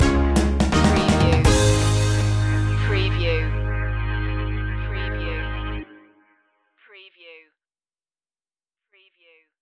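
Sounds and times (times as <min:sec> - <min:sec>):
music stinger: 0:00.0 - 0:06.5.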